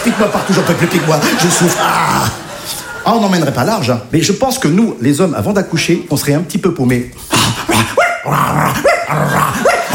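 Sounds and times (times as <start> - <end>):
laughter: 0.0 - 3.6
speech: 0.1 - 2.4, 3.1 - 9.7
man imitating a dog with barks and yelps: 7.4 - 9.9.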